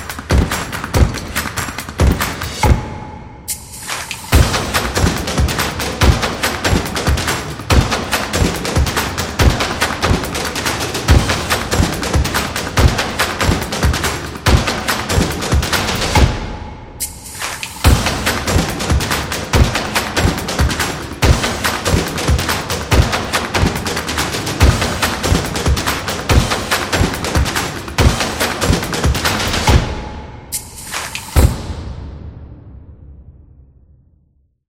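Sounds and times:
claps: 0.0s - 2.8s, 3.7s - 16.3s, 17.2s - 29.9s, 30.6s - 31.5s
drums: 3.5s - 32.4s
snaps: 30.8s - 31.4s.

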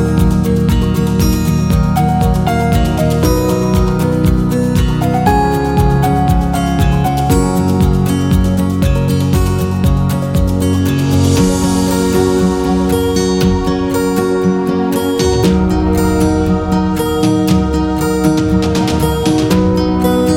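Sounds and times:
guitar: 0.0s - 20.3s
piano: 0.0s - 20.3s.

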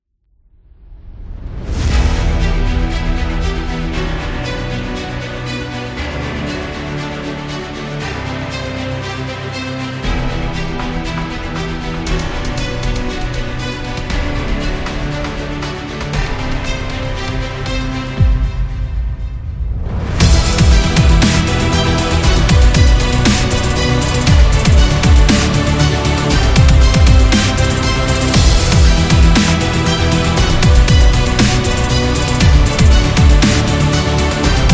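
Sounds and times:
epic dubstep music: 1.9s - 19.0s, 20.0s - 34.7s.

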